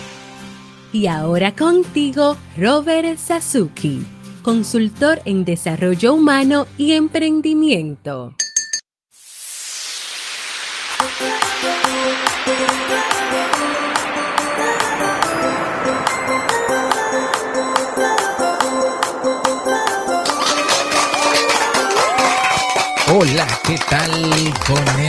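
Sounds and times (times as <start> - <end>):
speech: 0.9 - 8.4, 23.1 - 25.0
humming musical tones: 11.2 - 22.9
crowd applause: 14.5 - 25.0.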